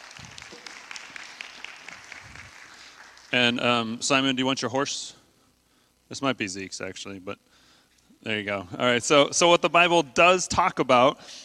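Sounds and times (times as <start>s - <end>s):
audience applause: 0.0s - 3.6s
speech: 3.3s - 5.2s, 6.1s - 7.6s, 8.2s - 11.4s.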